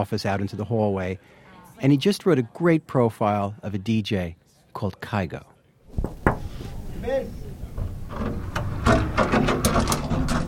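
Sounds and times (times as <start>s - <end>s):
speech: 0.0s - 6.1s, 7.1s - 7.5s
creaking door: 7.8s - 10.4s.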